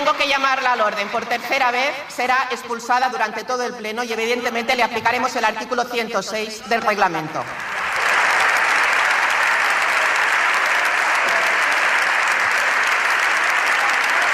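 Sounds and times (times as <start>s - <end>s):
speech: 0.2s - 7.7s
applause from deputies in parliament chamber: 7.6s - 14.3s.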